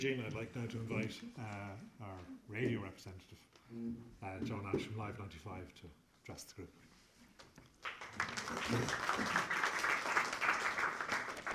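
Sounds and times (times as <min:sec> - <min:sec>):
speech: 0:00.0 - 0:06.9, 0:07.8 - 0:09.6
audience applauding: 0:07.8 - 0:11.5.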